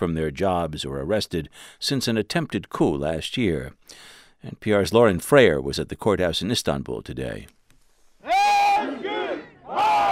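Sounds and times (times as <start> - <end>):
speech: 0.0 - 7.6
hundreds of protesters chanting outside an Istanbul courthouse: 8.3 - 10.1.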